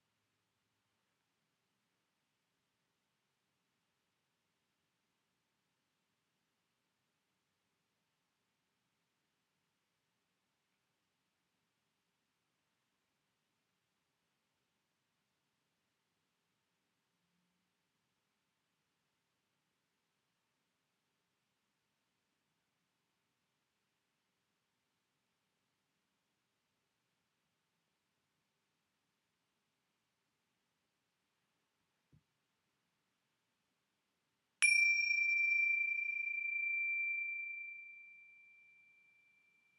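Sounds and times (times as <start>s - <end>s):
bells: 34.6s - 39.7s.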